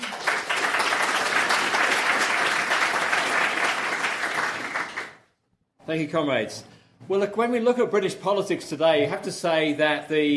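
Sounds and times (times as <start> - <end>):
audience clapping to welcome a speaker at a socialist political meeting: 0.0 - 5.3
speech: 5.9 - 10.3.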